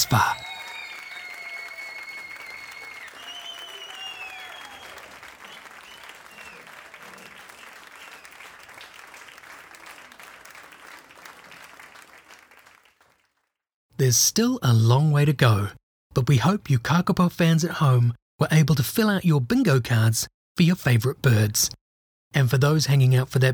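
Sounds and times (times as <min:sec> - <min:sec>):
high gliding whistles: 0:00.0 - 0:06.7
applause: 0:00.0 - 0:13.6
speech: 0:00.1 - 0:00.4, 0:14.0 - 0:23.5.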